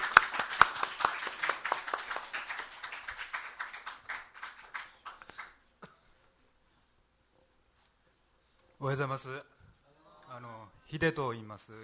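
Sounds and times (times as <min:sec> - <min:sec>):
audience clapping: 0:00.0 - 0:05.7
speech: 0:08.8 - 0:09.6, 0:10.3 - 0:11.8.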